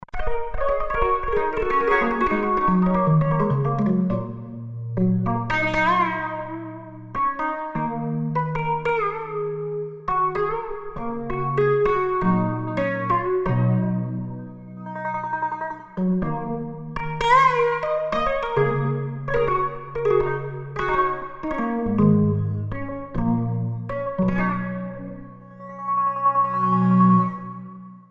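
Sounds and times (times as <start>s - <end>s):
strings: 0.2s - 28.0s.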